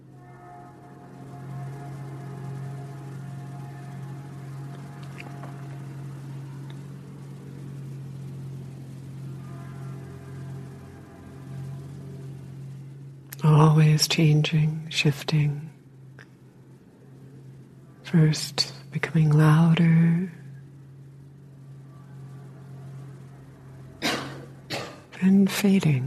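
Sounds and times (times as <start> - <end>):
train whistles: 0.0 - 13.6, 21.9 - 25.3
speech: 13.8 - 15.7, 18.1 - 20.4, 25.2 - 26.0.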